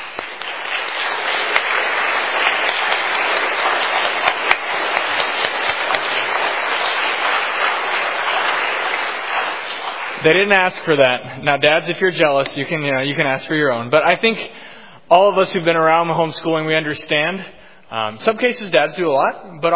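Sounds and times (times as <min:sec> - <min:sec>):
audience applause: 0:00.0 - 0:11.2
speech: 0:10.2 - 0:19.7.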